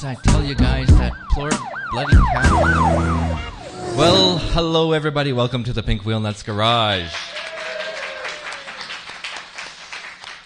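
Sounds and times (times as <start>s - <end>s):
speech: 0.0s - 7.4s
live audience applauding: 6.9s - 10.4s.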